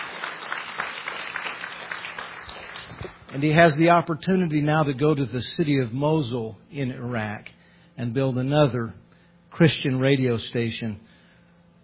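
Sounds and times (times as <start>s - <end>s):
audience clapping: 0.0s - 3.8s
speech: 3.3s - 11.1s.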